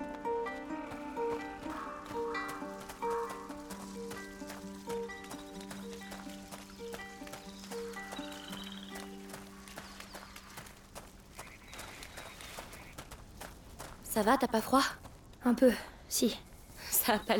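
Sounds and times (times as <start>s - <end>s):
frogs croaking: 1.0s - 13.2s
speech: 14.2s - 17.3s.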